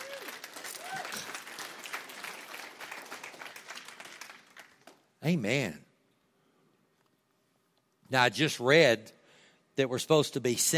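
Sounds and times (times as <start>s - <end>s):
person whooping: 0.0s - 1.4s
crowd clapping: 0.0s - 5.2s
speech: 5.2s - 5.8s, 8.1s - 9.2s, 9.8s - 10.7s.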